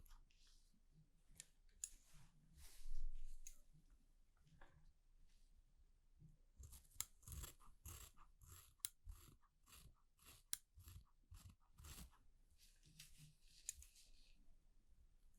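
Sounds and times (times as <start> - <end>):
soft rustle: 0.1 - 3.8, 12.0 - 14.6
scissors snipping through a haircut: 6.7 - 12.1.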